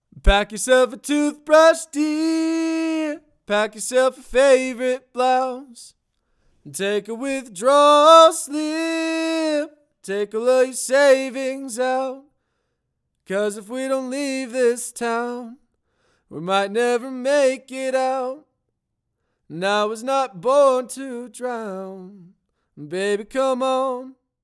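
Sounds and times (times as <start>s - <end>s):
treated vocals: 0.1s - 5.9s, 6.7s - 12.3s, 13.3s - 15.6s, 16.3s - 18.4s, 19.5s - 24.2s.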